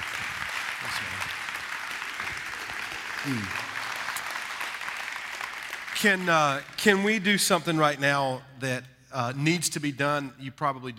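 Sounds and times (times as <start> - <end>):
church congregation in Kansas City applauding a guest minister: 0.0 - 7.9
speech: 0.8 - 1.4, 3.2 - 3.6, 6.0 - 10.9.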